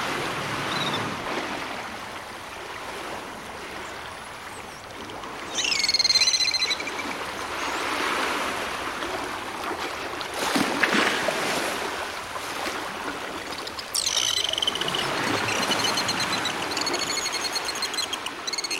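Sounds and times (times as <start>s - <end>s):
sea waves: 0.0s - 18.7s
dolphins clicking: 13.3s - 18.7s.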